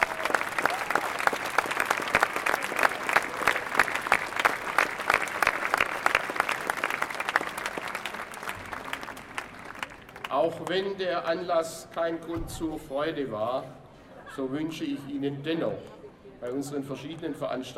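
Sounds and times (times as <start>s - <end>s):
audience applause: 0.0s - 10.6s
speech: 10.4s - 13.8s, 14.4s - 17.7s.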